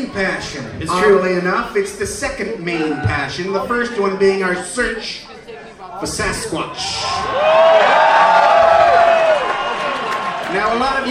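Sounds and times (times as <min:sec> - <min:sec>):
speech: 0:00.0 - 0:05.3, 0:06.0 - 0:08.3, 0:10.5 - 0:11.0
crowd cheering: 0:06.8 - 0:11.0.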